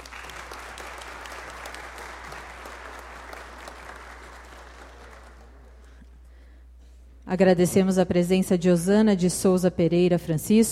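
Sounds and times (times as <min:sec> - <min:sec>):
audience applause: 0:00.0 - 0:06.0
speech: 0:07.3 - 0:10.7.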